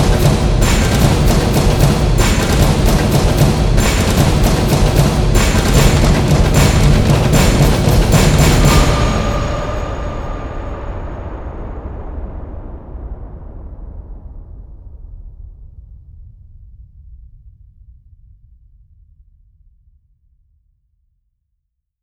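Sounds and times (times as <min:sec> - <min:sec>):
drums and percussion: 0:00.0 - 0:12.2.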